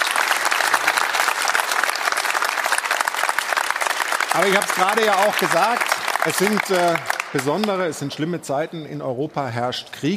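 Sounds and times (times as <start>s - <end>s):
audience applause: 0.0s - 8.1s
speech: 4.4s - 10.1s.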